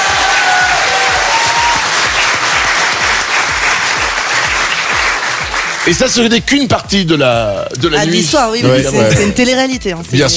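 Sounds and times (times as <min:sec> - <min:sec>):
audience applause: 0:00.0 - 0:06.2
speech: 0:05.8 - 0:10.3.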